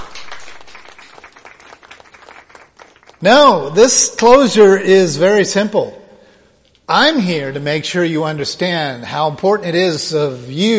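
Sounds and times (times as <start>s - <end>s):
audience applause: 0.0s - 3.3s
speech: 3.2s - 6.0s, 6.9s - 10.7s.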